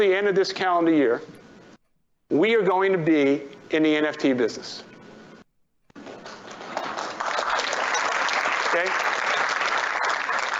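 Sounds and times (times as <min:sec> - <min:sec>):
speech: 0:00.0 - 0:01.4, 0:02.3 - 0:04.9
delayed guarded crowd applause: 0:06.0 - 0:10.5.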